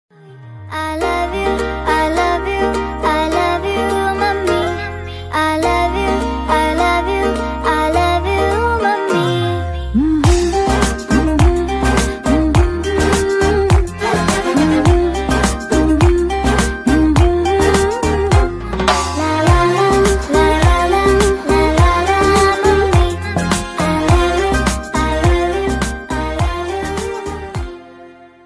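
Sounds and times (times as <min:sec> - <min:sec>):
ringtone song: 0:00.8 - 0:28.4.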